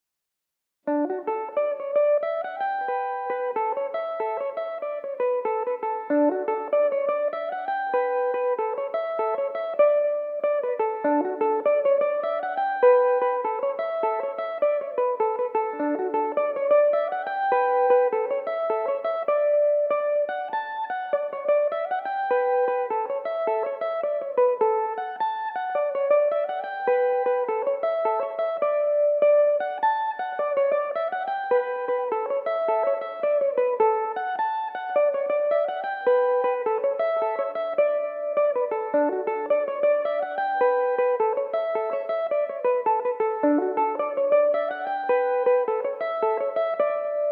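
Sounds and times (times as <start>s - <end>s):
Irish mandolin playing a Cape Breton jig in D major: 0.9s - 47.2s.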